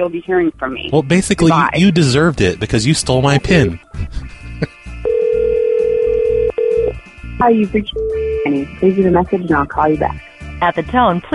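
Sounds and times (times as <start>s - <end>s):
speech: 0.0s - 4.8s, 7.4s - 11.3s
laughter: 1.0s - 4.8s
phone ringing on an unanswered call: 5.0s - 7.0s.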